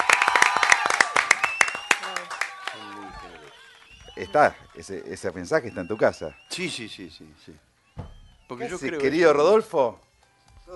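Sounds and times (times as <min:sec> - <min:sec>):
audience applause: 0:00.0 - 0:06.4
speech: 0:04.2 - 0:07.7, 0:08.5 - 0:10.1.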